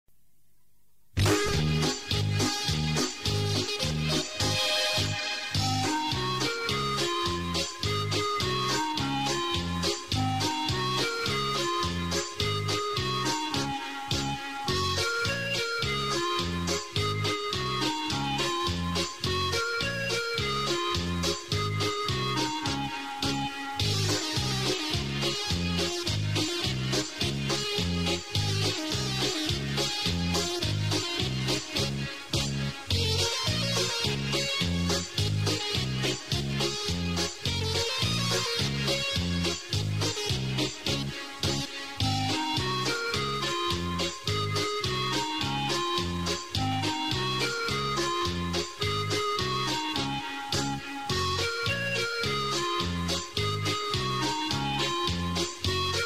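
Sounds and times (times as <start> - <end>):
Krakowiak folk dance music: 1.2 - 56.0.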